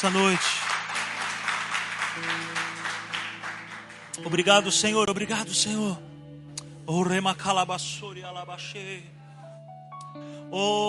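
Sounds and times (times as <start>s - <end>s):
speech: 0.0s - 0.7s, 2.2s - 2.5s, 4.2s - 6.1s, 6.9s - 9.2s, 10.2s - 10.8s
audience applauding: 0.0s - 5.0s.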